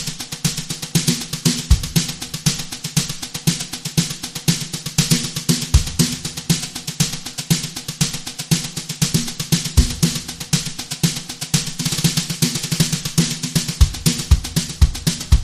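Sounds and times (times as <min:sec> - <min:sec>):
drum brushes: 0:00.0 - 0:15.4
kick drum: 0:01.6 - 0:02.6, 0:05.8 - 0:06.4, 0:09.8 - 0:10.6, 0:13.8 - 0:15.4.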